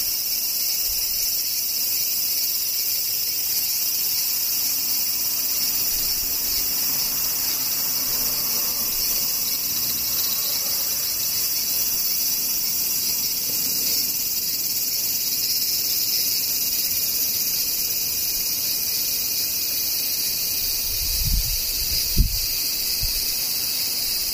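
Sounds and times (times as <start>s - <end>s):
cicadas buzzing: 0.0s - 24.3s.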